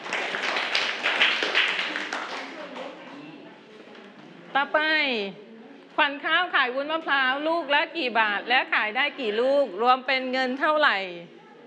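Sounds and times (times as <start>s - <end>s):
children clapping hands for a group: 0.0s - 3.1s
speech: 4.6s - 5.4s, 6.0s - 11.4s.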